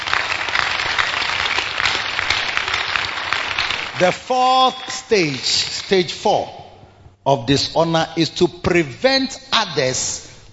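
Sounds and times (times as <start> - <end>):
audience clapping: 0.0 - 6.0
speech: 4.0 - 6.6, 7.2 - 10.3.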